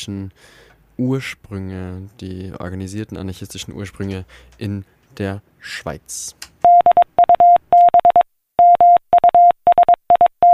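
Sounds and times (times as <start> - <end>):
speech: 0.0 - 6.5
Morse code telegraph transmission beeps: 6.6 - 10.5.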